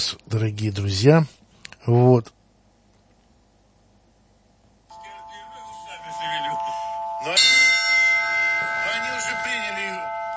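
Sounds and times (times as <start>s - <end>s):
speech: 0.1s - 2.4s, 7.2s - 7.5s
church bells ringing from a belfry: 4.9s - 10.3s.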